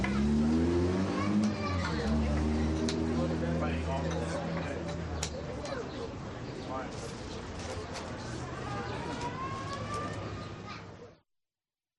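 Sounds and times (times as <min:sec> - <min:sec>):
restaurant cafe ambience: 0:00.0 - 0:11.2.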